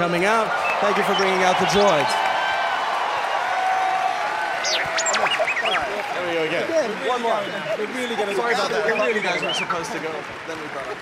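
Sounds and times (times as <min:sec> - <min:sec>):
speech: 0:00.0 - 0:02.2, 0:06.2 - 0:11.0
audience applause: 0:00.0 - 0:11.0.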